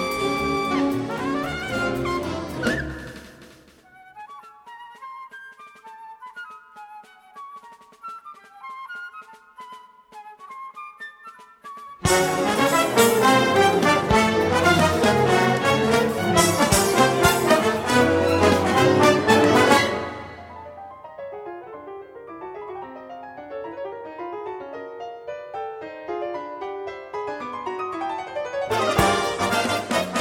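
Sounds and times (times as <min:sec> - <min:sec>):
jazz band and orchestra concerto: 0:00.0 - 0:10.7, 0:11.3 - 0:20.9, 0:27.4 - 0:30.1.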